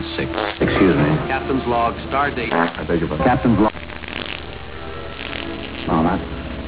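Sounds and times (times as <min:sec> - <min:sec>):
fart: 0:00.2 - 0:01.3, 0:02.5 - 0:06.2.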